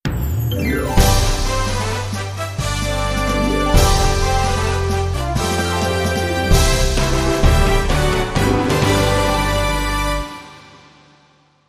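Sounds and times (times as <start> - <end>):
jingle: 0.1 - 10.9.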